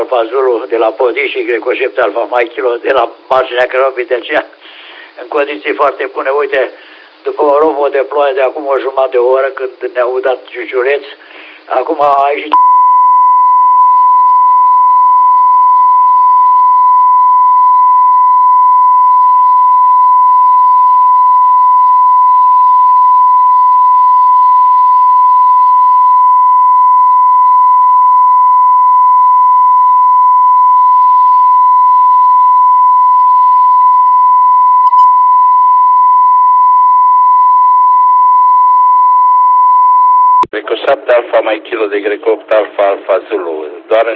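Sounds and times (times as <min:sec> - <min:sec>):
speech: 0:00.1 - 0:12.7, 0:40.9 - 0:44.1
whistling radio carrier tone: 0:12.5 - 0:40.5.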